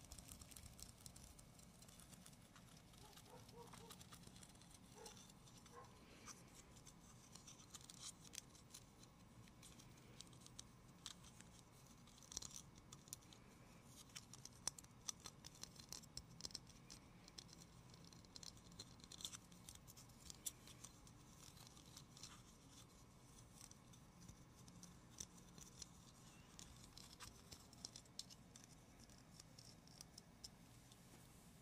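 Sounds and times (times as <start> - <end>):
gentle tapping and scratching: 0.0 - 31.5.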